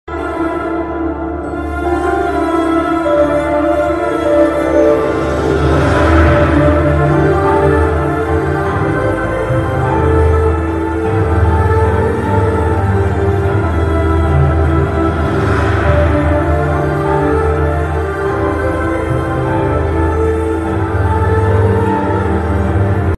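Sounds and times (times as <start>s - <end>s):
sad emotional background music: 0.1s - 23.1s.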